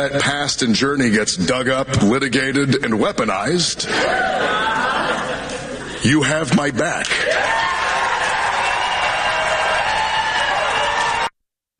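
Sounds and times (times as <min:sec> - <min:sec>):
speech: 0:00.0 - 0:04.9, 0:06.0 - 0:07.8
laughter: 0:03.8 - 0:06.0
audience clapping: 0:07.1 - 0:11.3.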